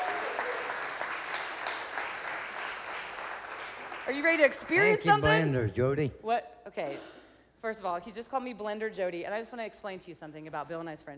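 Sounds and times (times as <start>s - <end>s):
audience applause: 0.0s - 5.6s
speech: 4.1s - 11.1s.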